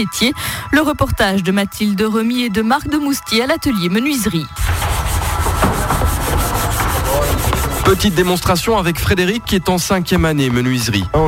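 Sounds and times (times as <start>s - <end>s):
speech: 0.0s - 4.8s, 7.9s - 11.2s
hand sanding wooden photo frame edges in a carpentry workshop: 4.6s - 9.2s.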